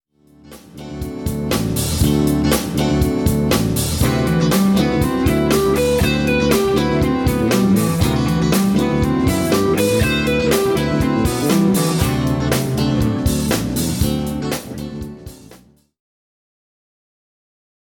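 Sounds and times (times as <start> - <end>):
guitar playing: 0.3 - 15.7.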